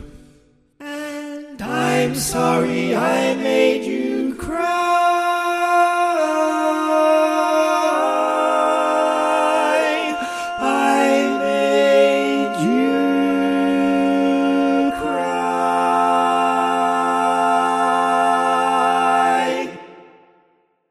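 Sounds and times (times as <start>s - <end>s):
baritone barbershop tags: 0.8s - 19.8s.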